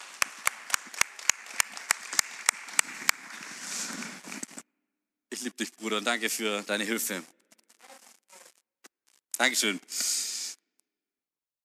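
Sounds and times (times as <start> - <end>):
audience applause: 0.0 - 4.5
speech: 5.4 - 7.4, 9.4 - 10.2.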